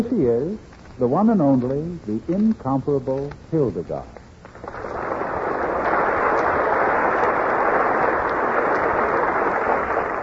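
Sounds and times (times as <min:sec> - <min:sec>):
speech: 0:00.0 - 0:04.2
audience applause: 0:04.5 - 0:10.2.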